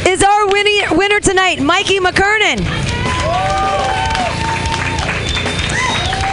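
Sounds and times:
speech: 1.0s - 2.9s
audience clapping: 2.6s - 6.3s
high whoops: 3.0s - 6.3s
voices wooing: 3.0s - 6.3s.

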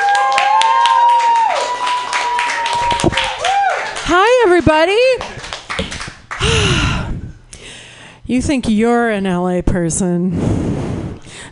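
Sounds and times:
audience cheering: 0.0s - 4.0s
audience clapping: 0.0s - 6.7s
speech: 4.1s - 5.3s, 8.3s - 10.9s.

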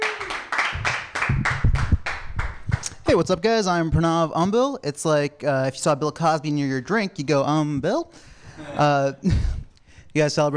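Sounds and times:
audience clapping: 0.0s - 3.0s
speech: 3.1s - 10.5s.

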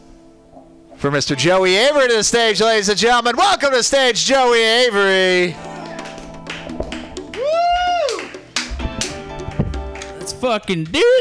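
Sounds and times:
speech: 1.0s - 5.7s, 10.4s - 11.1s
crowd applause: 5.7s - 10.2s
person whistling or whooping: 7.4s - 8.4s.

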